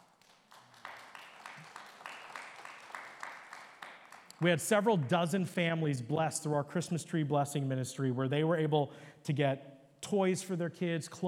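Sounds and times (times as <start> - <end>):
audience applause: 0.0 - 4.5
speech: 4.4 - 11.2.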